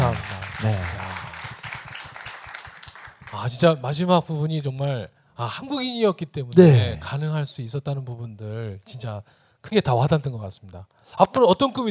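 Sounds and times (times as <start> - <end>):
small group applauding: 0.0 - 3.8
speech: 0.6 - 1.0, 3.4 - 11.9.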